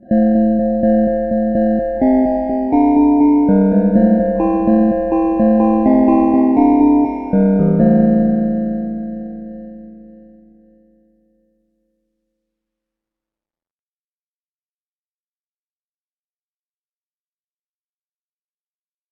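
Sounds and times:
bass: 0.0s - 10.9s
glockenspiel: 0.1s - 10.5s.

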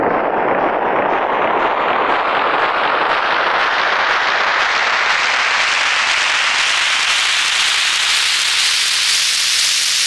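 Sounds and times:
applause: 0.2s - 9.9s.

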